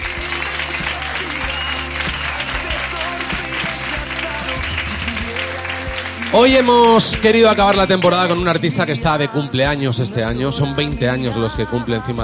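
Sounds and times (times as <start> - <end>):
audience applause: 0.0 - 8.8
speech: 6.3 - 12.2.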